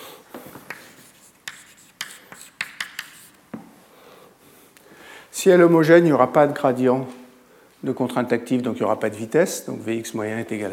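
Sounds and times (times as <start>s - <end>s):
hand-writing of an equation, scratching strokes and taps: 0.7s - 3.4s
speech: 5.4s - 7.2s, 7.8s - 10.7s.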